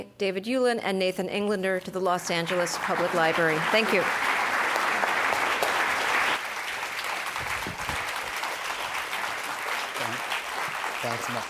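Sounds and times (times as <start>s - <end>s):
speech: 0.0s - 4.4s, 11.2s - 11.4s
audience applause at a book reading at the Los Angeles Public Library: 2.4s - 11.4s.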